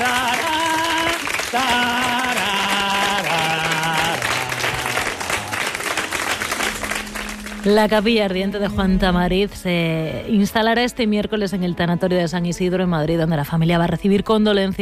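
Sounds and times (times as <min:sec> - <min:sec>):
crowd applause: 0:00.0 - 0:07.9
speech: 0:01.5 - 0:02.0, 0:07.6 - 0:14.8
sustained melody of slowly descending notes: 0:03.3 - 0:10.2.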